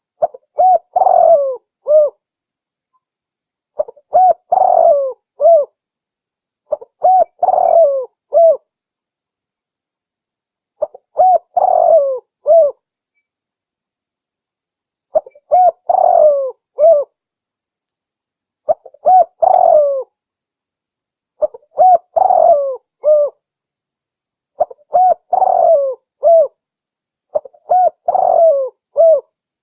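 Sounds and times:
spotted dove cooing: 0.2 - 2.2, 3.8 - 5.8, 6.7 - 8.7, 10.8 - 12.8, 15.1 - 17.1, 18.7 - 20.1, 21.4 - 23.4, 24.6 - 26.6, 27.3 - 29.3.

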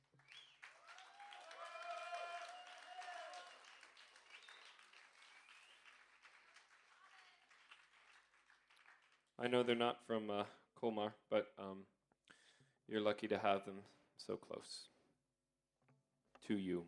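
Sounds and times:
concert crowd clapping: 0.0 - 9.4
concert crowd whooping and cheering: 0.6 - 4.8
speech: 9.4 - 12.0, 12.9 - 14.9, 16.4 - 16.8.

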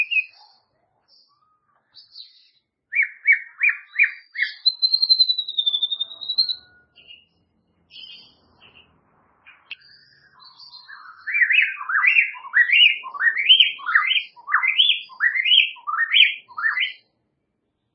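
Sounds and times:
White-rumped shama song with whistles: 0.0 - 0.6, 1.3 - 7.3, 9.7 - 17.0.

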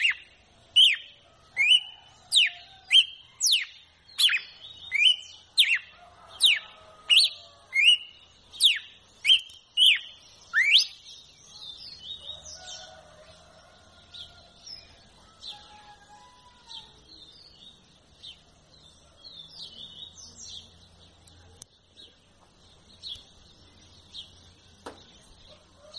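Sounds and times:
red-cowled cardinal song of clear whistles: 0.0 - 13.2.

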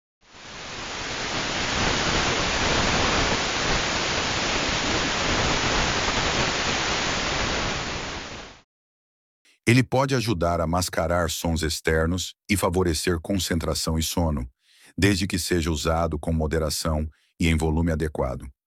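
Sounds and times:
white noise: 0.3 - 8.6
speech: 9.7 - 18.6.

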